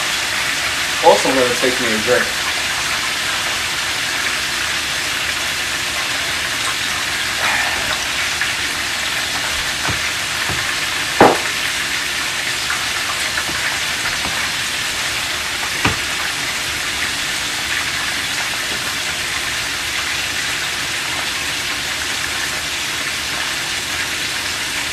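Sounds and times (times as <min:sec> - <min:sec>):
chicken frying in hot oil for a soul-food meal: 0:00.0 - 0:24.9
speech: 0:01.2 - 0:02.4.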